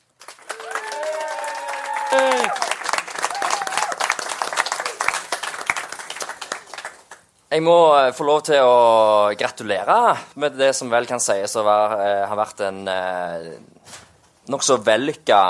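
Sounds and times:
warm audience applause: 0.0 - 7.3
speech: 7.5 - 15.4.

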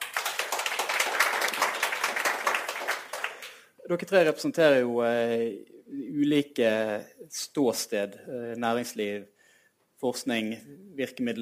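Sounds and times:
audience applause: 0.0 - 3.6
speech: 3.9 - 9.4, 10.0 - 11.3.

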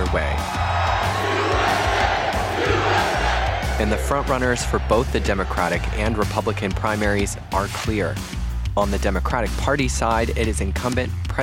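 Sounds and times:
crowd cheering and shouting: 0.0 - 9.0
speech: 0.1 - 0.6, 3.8 - 11.4.

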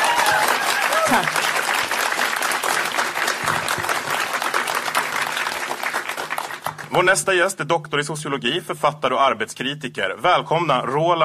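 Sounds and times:
audience applause: 0.0 - 7.1
speech: 1.1 - 1.4, 6.9 - 11.2.

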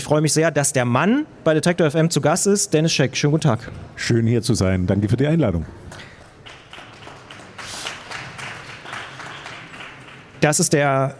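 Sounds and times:
speech: 0.0 - 6.1, 10.4 - 11.1
audience applause: 5.9 - 10.6.

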